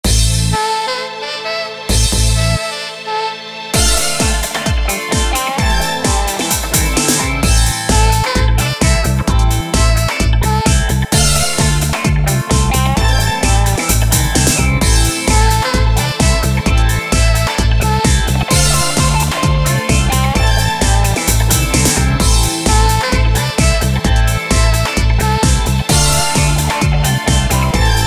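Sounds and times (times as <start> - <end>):
disco tone: 0.0 - 2.9, 3.8 - 28.0.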